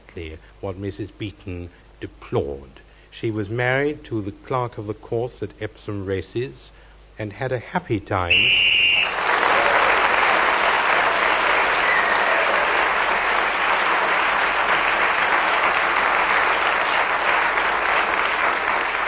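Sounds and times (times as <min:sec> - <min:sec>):
speech: 0:00.2 - 0:08.7
loud audience applause: 0:08.4 - 0:19.0.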